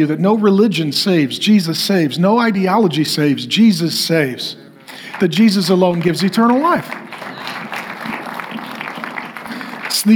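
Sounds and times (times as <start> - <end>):
speech: 0.0 - 7.0
audience light applause: 5.0 - 10.1.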